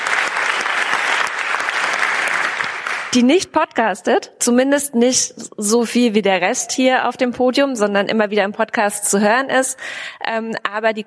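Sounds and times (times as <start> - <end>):
audience clapping: 0.0 - 3.4
speech: 3.1 - 11.0.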